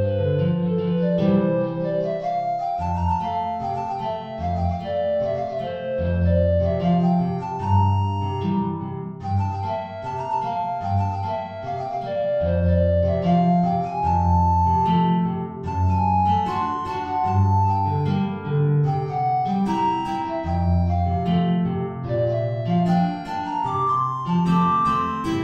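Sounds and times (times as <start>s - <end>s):
guitar: 0.0s - 25.4s
tenor recorder: 0.0s - 25.4s.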